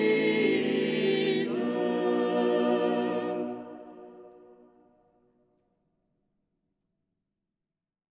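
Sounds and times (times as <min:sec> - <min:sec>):
polyphonic choir singing: 0:00.0 - 0:04.8.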